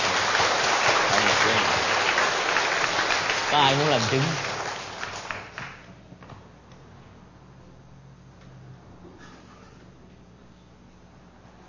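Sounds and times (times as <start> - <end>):
audience applause: 0.0 - 5.9
speech: 3.5 - 4.5.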